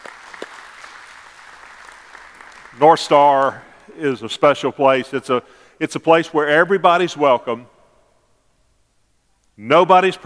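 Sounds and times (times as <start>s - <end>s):
church audience applauding as a new campus goes live: 0.0s - 4.1s
speech: 2.8s - 7.7s, 9.6s - 10.2s.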